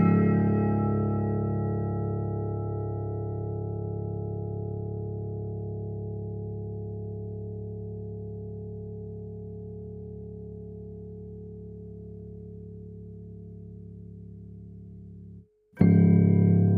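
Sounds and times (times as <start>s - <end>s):
bells: 0.0s - 7.6s
piano: 0.0s - 14.1s, 15.8s - 16.7s.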